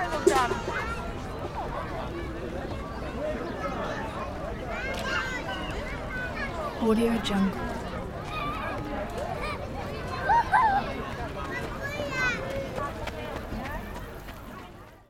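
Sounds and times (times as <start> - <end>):
playground ambience: 0.0 - 15.0.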